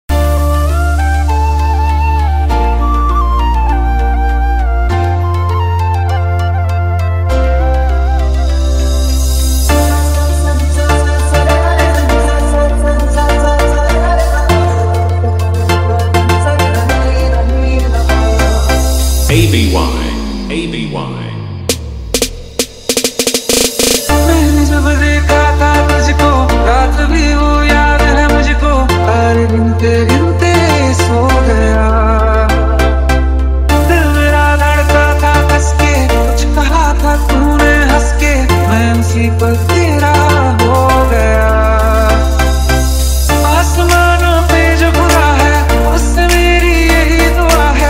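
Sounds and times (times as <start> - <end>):
Bollywood DJ remix song in hard electro house mix: 0.1 - 47.8.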